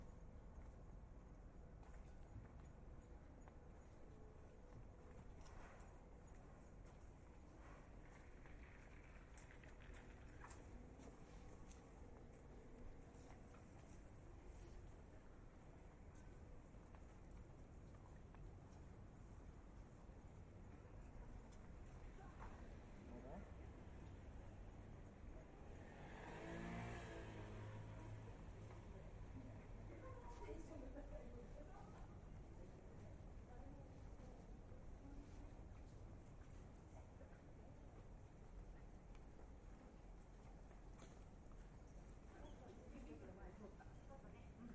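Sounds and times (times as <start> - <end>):
traffic rumble in Tokyo streets: 0.0 - 44.7
rain on Tokyo streets: 5.3 - 44.7
vehicle passing with a rising tone: 25.6 - 29.8.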